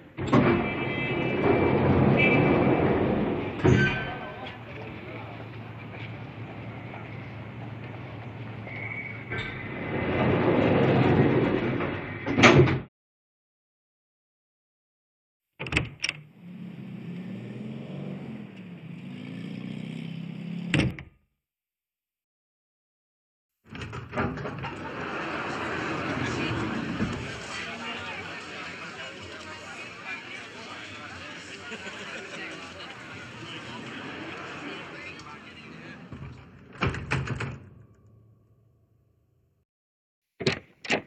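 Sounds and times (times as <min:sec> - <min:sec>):
doors recorded binaurally: 0:00.0 - 0:06.7, 0:07.5 - 0:12.9, 0:15.6 - 0:16.3, 0:20.7 - 0:21.2, 0:23.7 - 0:28.2, 0:33.4 - 0:38.2, 0:40.4 - 0:41.0
laughter: 0:24.5 - 0:35.2.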